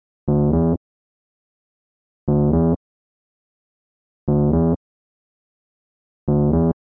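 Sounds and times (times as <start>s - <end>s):
bassline: 0.3s - 0.8s, 2.3s - 2.8s, 4.3s - 4.8s, 6.3s - 6.8s.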